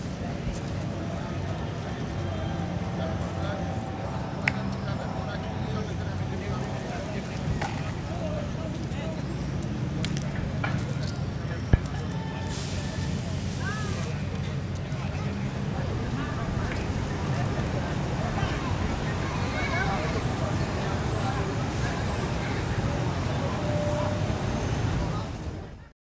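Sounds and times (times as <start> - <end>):
city park ambience: 0.0 - 25.9.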